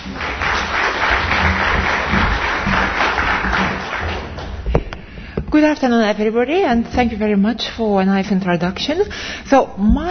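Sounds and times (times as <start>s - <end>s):
audience applause welcoming a speaker to the stage: 0.0s - 4.6s
speech: 5.6s - 10.0s.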